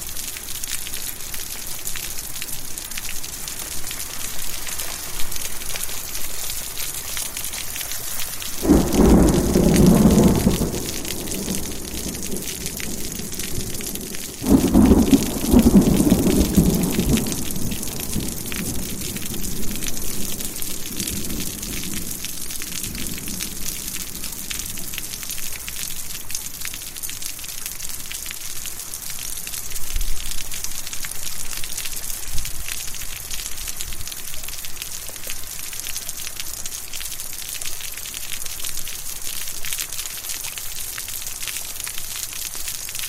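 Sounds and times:
steady rain on a porch: 0:00.0 - 0:43.0
thunder rumbling: 0:08.4 - 0:25.0.

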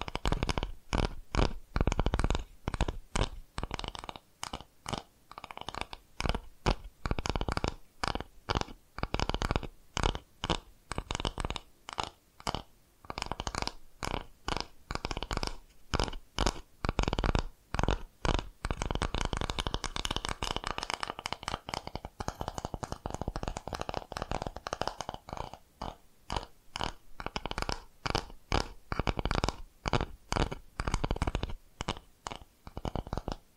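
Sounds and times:
rapid tapping: 0:00.0 - 0:33.4.

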